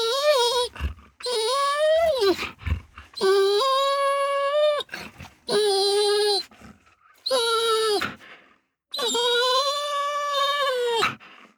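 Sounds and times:
dog whining long: 0.0 - 2.6, 3.2 - 6.5, 7.2 - 8.2, 8.9 - 11.2.

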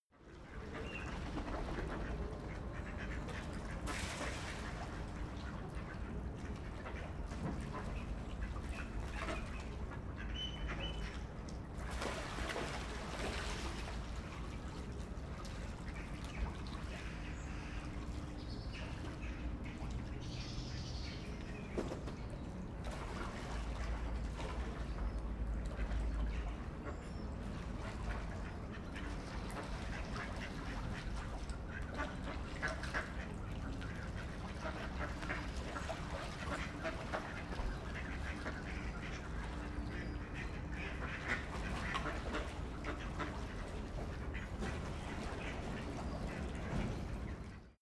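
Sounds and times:
canal water: 0.0 - 47.8
ducks on a European canal by day: 0.3 - 47.8.

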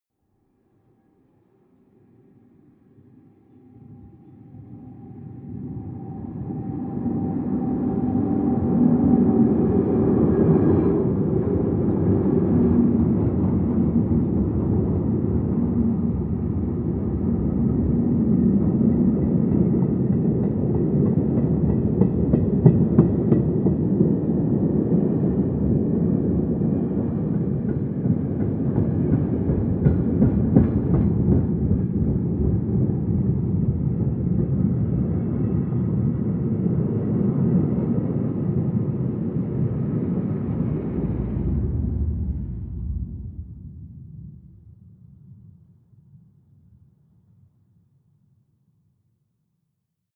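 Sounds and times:
distant freight train driving by: 4.7 - 44.6.

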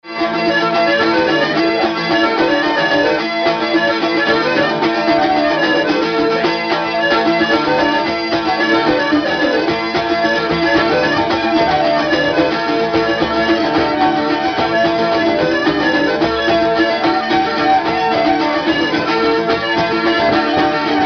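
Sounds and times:
Irish Scottish folk music: 0.0 - 21.0.

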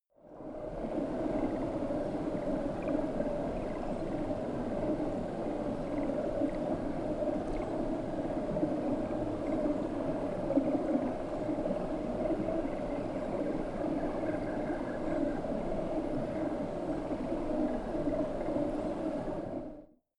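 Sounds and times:
spooky water effect: 0.3 - 19.8.

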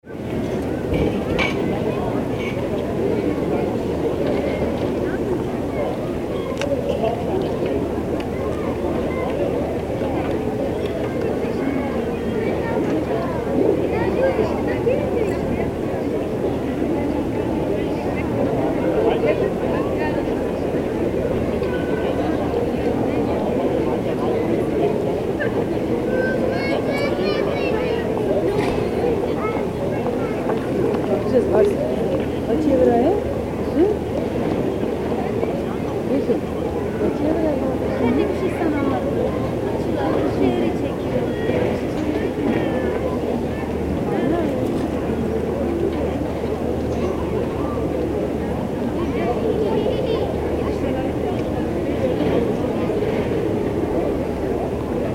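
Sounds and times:
marketplace ambience: 0.0 - 55.1.

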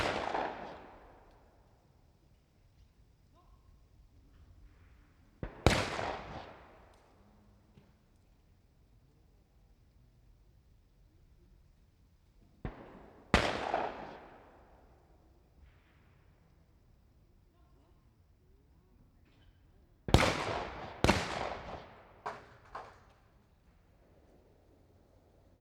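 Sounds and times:
gunshots at a shooting range: 0.0 - 1.2, 5.4 - 6.9, 12.7 - 14.7, 20.1 - 23.1.

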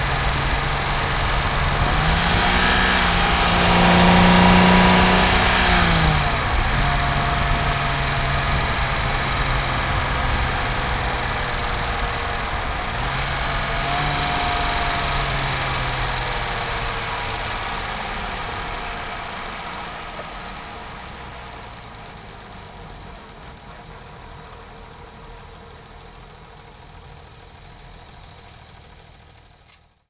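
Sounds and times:
Jaguar E-Type car engine accelerating and decelerating: 0.0 - 29.4.

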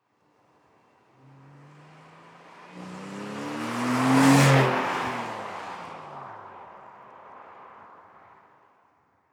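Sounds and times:
sports car passing by fast, exterior: 1.0 - 7.8.

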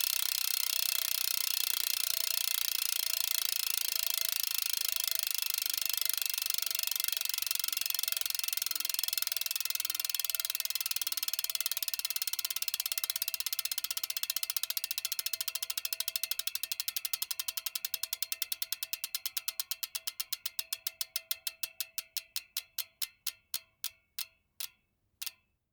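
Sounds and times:
BMX bike freewheel coasting: 0.0 - 25.4.

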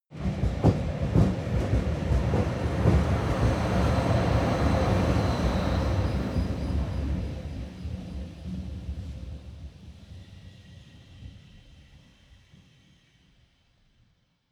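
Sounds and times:
train locomotive passing by: 0.2 - 10.5.

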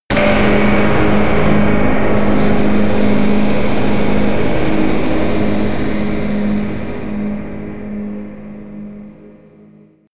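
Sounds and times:
crush hit: 0.1 - 8.0.

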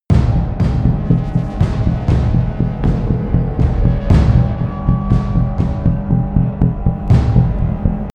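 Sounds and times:
promo synth pad: 0.1 - 8.1.

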